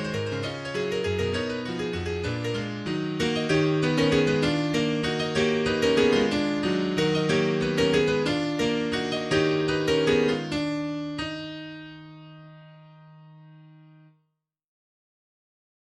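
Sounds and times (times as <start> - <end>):
presto classical piece in E flat minor: 0.0 - 11.7.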